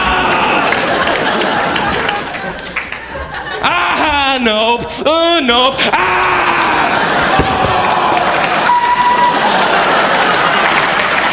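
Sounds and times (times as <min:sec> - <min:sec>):
audience applause: 0:00.0 - 0:03.6, 0:06.3 - 0:11.3
laughter: 0:00.0 - 0:11.3
speech: 0:04.4 - 0:06.6.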